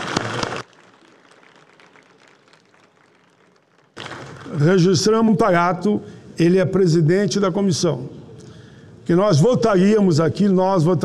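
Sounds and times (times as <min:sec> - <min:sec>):
applause: 0:00.0 - 0:04.8
speech: 0:04.5 - 0:08.2, 0:09.1 - 0:11.0.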